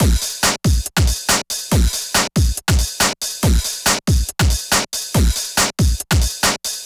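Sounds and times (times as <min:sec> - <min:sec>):
distorted electronic drum and percussion loop: 0:00.0 - 0:06.6.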